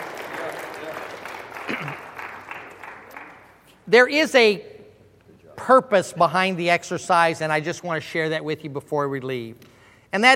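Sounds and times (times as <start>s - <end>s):
light applause: 0.0s - 3.7s
speech: 3.9s - 4.7s, 5.6s - 10.3s.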